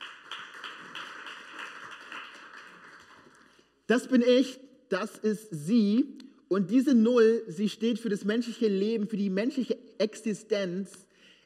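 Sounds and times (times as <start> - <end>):
audience applause: 0.0 - 3.5
speech: 3.9 - 11.1.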